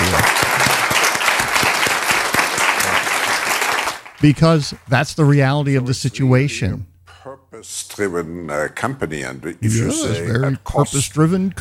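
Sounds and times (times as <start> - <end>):
audience clapping: 0.0 - 4.9
speech: 4.2 - 6.9, 7.5 - 11.5.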